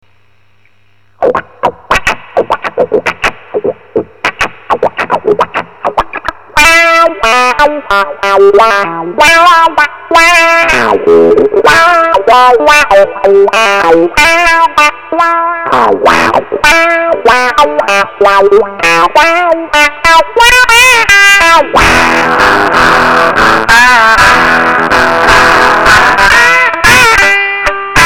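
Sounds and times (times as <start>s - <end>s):
Fuzz Face fuzz and wah guitar sample: 1.2s - 28.0s.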